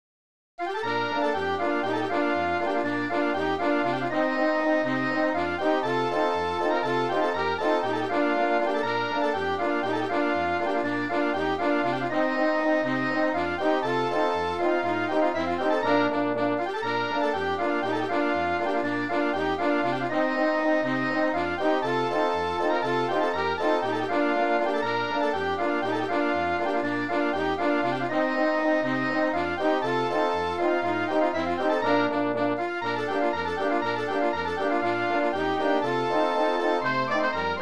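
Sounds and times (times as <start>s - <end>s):
brass band polka: 0.6s - 37.6s.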